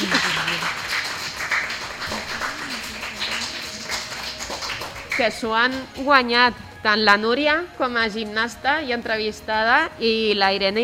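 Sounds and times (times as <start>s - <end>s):
classroom applause: 0.0s - 5.4s
speech: 5.2s - 10.8s.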